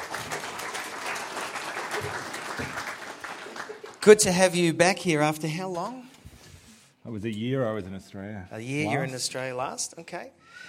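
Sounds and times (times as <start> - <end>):
audience applause welcoming a guest: 0.0 - 4.2
speech: 4.0 - 6.1, 7.1 - 10.6.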